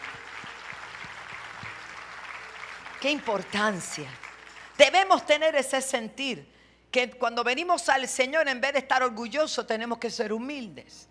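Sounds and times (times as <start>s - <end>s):
audience applauding: 0.0s - 4.8s
speech: 3.0s - 4.2s, 4.9s - 11.0s.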